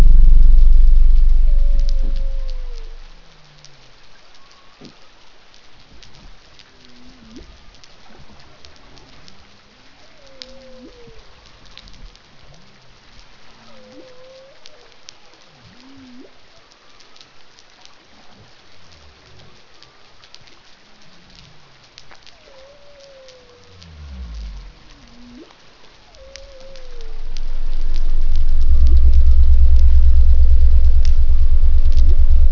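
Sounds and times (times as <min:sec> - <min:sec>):
pygmy blue whale song: 0:00.0 - 0:03.4, 0:22.3 - 0:32.5.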